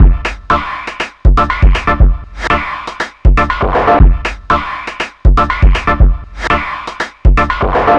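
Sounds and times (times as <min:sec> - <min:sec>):
electronic music: 0:00.0 - 0:07.9.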